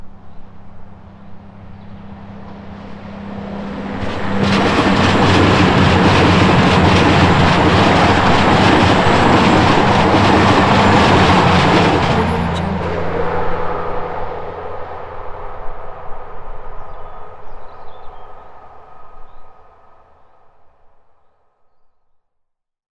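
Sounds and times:
goods train passing: 0:01.5 - 0:15.6.

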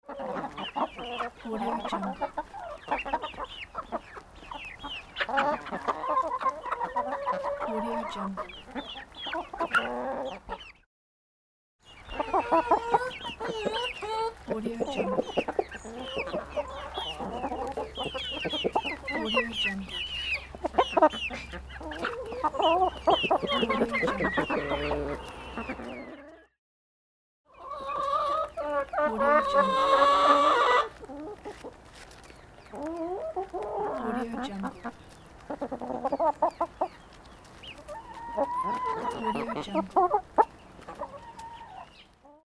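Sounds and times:
chickens: 0:00.0 - 0:10.9, 0:11.9 - 0:26.6, 0:27.5 - 0:42.4.

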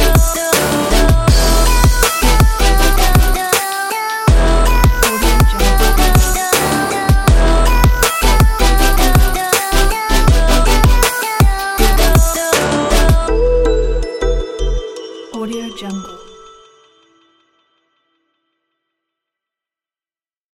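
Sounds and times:
future bass music for a travel vlog: 0:00.0 - 0:15.7.

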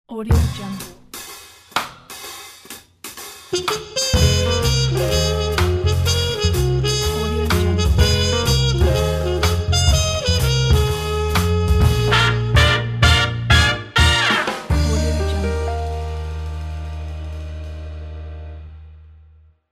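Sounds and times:
jazz logo jingle: 0:03.5 - 0:18.8.

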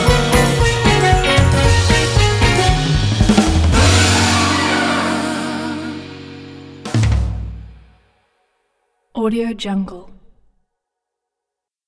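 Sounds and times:
Christmas jazz music: 0:00.0 - 0:08.0.

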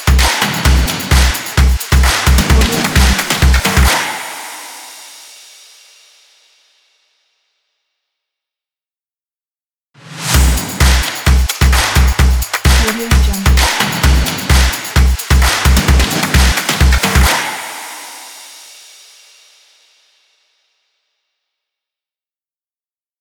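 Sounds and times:
energetic music: 0:00.0 - 0:04.2, 0:10.4 - 0:17.6.

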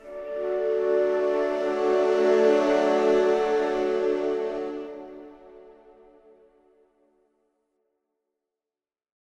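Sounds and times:
poetry with music: 0:00.0 - 0:07.1.

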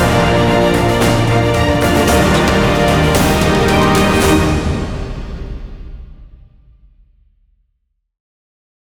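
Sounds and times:
epic celebration music: 0:00.0 - 0:06.2.

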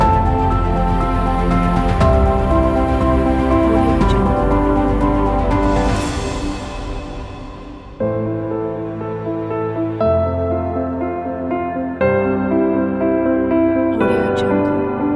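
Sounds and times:
cinematic background piano music: 0:00.0 - 0:15.1.

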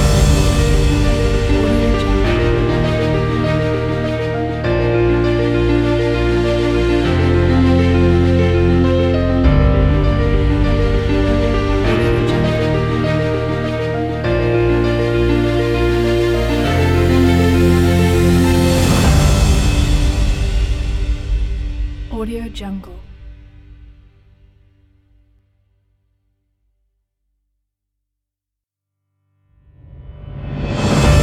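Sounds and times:
inspirational cinematic piano music: 0:00.0 - 0:24.6, 0:29.7 - 0:31.2.

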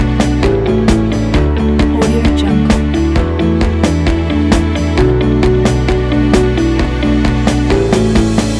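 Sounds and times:
motivational upbeat indie folk music: 0:00.0 - 0:08.5.

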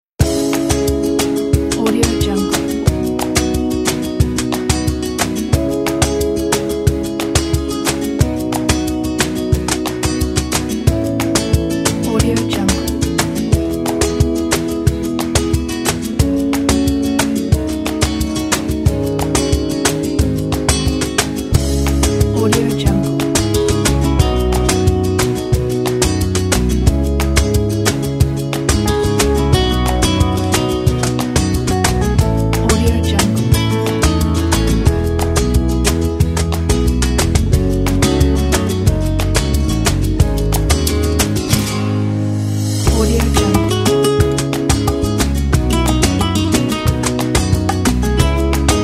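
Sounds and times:
emotional flamenco music: 0:00.2 - 0:48.8.

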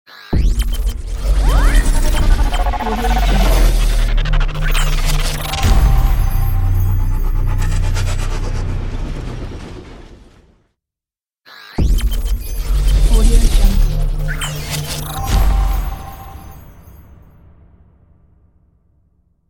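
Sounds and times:
technology logo sting: 0:00.6 - 0:09.1, 0:12.0 - 0:17.0.

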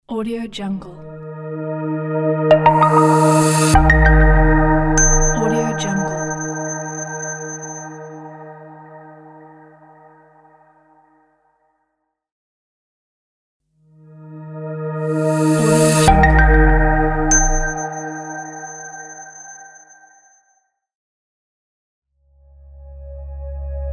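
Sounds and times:
flat smart logo jingle: 0:01.2 - 0:10.2, 0:15.1 - 0:19.9.

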